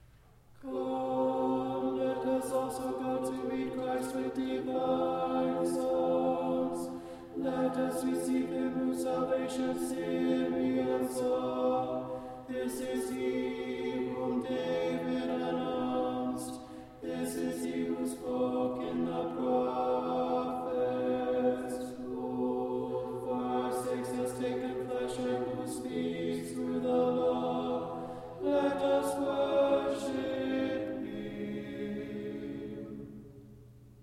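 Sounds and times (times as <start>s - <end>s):
tenor chanting sticheron in tone three: 0.6s - 33.5s.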